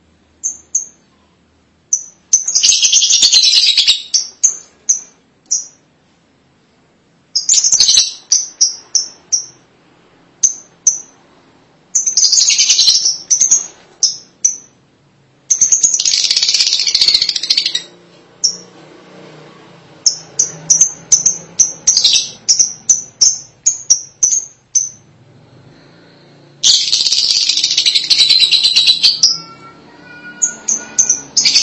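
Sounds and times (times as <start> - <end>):
lovebird sharp chirps and chatter: 1.9 - 5.8, 7.4 - 9.6, 11.9 - 14.7, 15.5 - 18.6, 20.0 - 25.0, 26.6 - 31.6.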